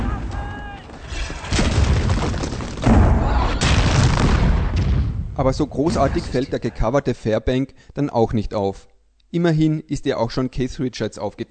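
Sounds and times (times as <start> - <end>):
cannon fire: 1.1 - 6.4
speech: 5.4 - 11.4.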